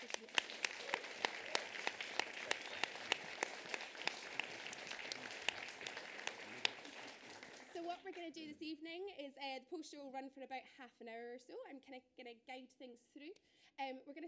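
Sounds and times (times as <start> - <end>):
audience round of applause: 0.0 - 8.2
speech: 8.1 - 14.2.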